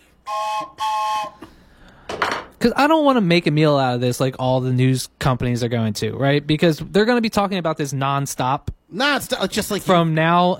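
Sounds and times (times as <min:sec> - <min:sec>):
train-style whistle blasts: 0:00.0 - 0:01.5
speech: 0:00.3 - 0:00.8, 0:02.6 - 0:10.5.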